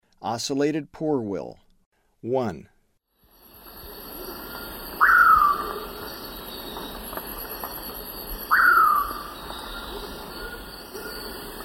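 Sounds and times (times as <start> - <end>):
ocellated poorwill short downslurred whistle call: 5.0 - 5.8, 8.5 - 11.3.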